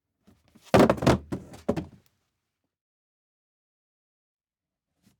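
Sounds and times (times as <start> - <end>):
boxes falling on a wood surface: 0.7 - 2.0.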